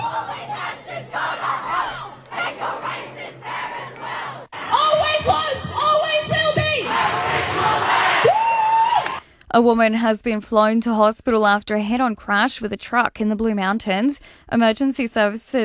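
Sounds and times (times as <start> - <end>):
protesting students shouting and chanting at a rally: 0.0 - 9.2
speech: 9.5 - 15.6.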